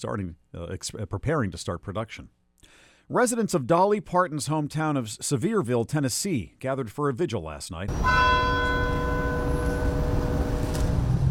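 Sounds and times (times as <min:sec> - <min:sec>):
speech: 0:00.0 - 0:09.0
town courthouse bell tolling: 0:07.9 - 0:10.7.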